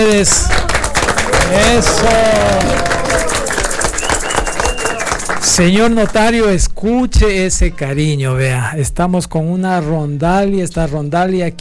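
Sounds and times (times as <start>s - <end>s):
speech: 0.0s - 0.7s, 1.5s - 3.4s, 5.4s - 11.6s
applause: 0.0s - 6.5s.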